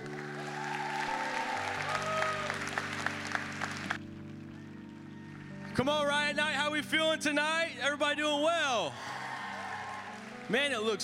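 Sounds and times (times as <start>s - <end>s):
audience applause at a church youth night: 0.0s - 5.8s, 8.9s - 10.8s
speech: 5.8s - 9.2s, 10.5s - 11.0s.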